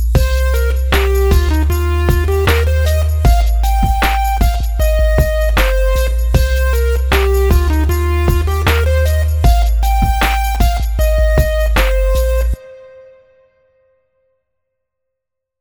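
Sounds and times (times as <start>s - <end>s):
simple sixteenth note rhythms: 0.2s - 13.3s.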